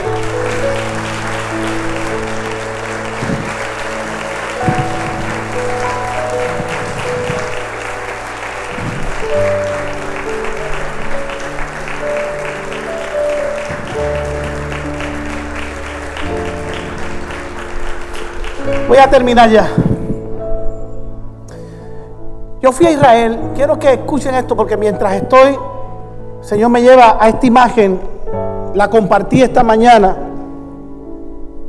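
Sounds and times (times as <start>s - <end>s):
crowd applause: 0.0s - 19.6s
speech: 19.0s - 19.9s, 22.7s - 25.7s, 26.5s - 28.1s, 28.7s - 30.2s.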